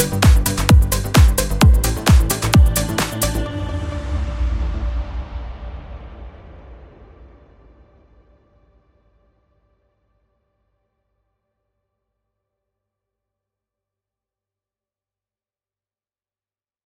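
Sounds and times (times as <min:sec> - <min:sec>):
uplifting trance music: 0:00.0 - 0:05.9.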